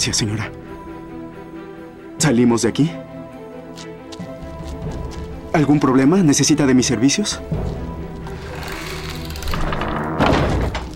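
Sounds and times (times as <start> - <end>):
speech: 0.0 - 0.6, 2.2 - 3.1, 5.5 - 7.8
door shutting with heavy thud: 8.6 - 10.9.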